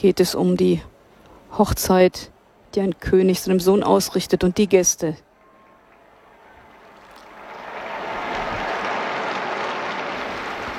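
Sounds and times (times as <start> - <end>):
speech: 0.0 - 0.9, 1.5 - 5.3
applause: 5.9 - 10.7.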